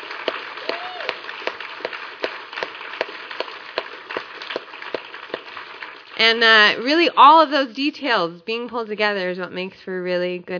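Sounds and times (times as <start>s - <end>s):
audience applause: 0.0s - 6.2s
speech: 6.2s - 10.5s.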